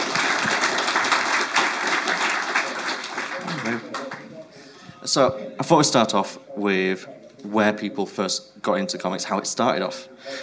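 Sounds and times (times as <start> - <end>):
crowd applause: 0.0 - 5.0
speech: 5.2 - 10.4.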